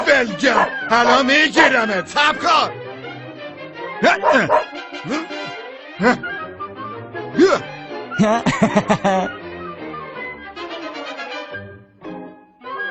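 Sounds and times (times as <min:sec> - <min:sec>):
dog barking: 0:00.0 - 0:01.9, 0:04.0 - 0:04.8
speech: 0:00.1 - 0:02.8, 0:04.0 - 0:05.3, 0:06.0 - 0:06.4, 0:07.4 - 0:09.4
laughter: 0:04.0 - 0:06.2, 0:08.2 - 0:09.3.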